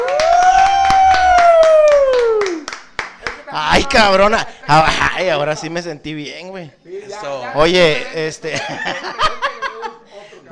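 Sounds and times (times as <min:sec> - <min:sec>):
applause: 0:00.0 - 0:03.5
speech: 0:03.8 - 0:09.4
laughter: 0:08.4 - 0:10.4.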